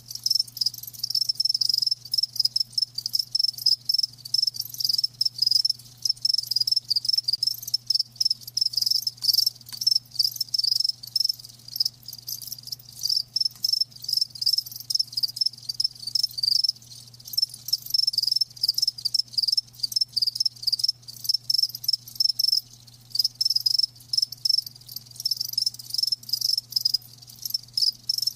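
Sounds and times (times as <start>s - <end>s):
crickets chirping: 0.0s - 28.3s.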